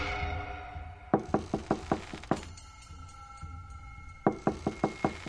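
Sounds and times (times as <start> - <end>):
man's hand knocking hard on a closed door of a rented room: 1.2 - 2.5, 4.3 - 5.2.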